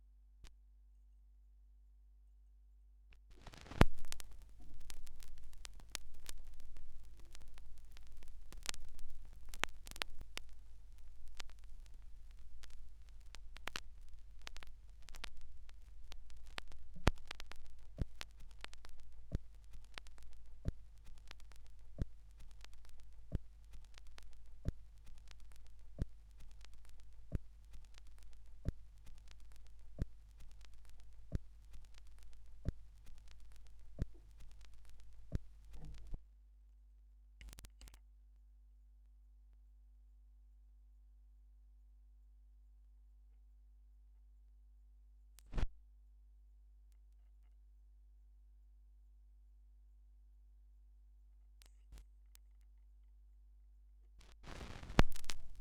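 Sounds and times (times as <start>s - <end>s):
vinyl record noise: 3.2s - 36.2s, 45.4s - 45.7s, 54.2s - 55.5s.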